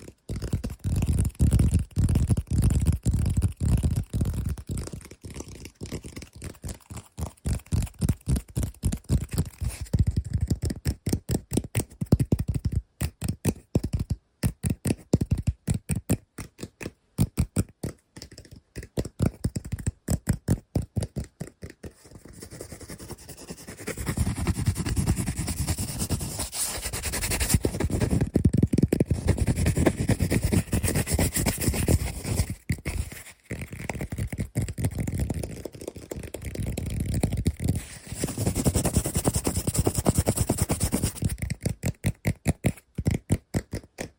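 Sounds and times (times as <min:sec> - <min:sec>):
fast aggressive tapping: 0:00.0 - 0:44.1
rough scratching strokes: 0:22.3 - 0:33.7, 0:37.7 - 0:41.4.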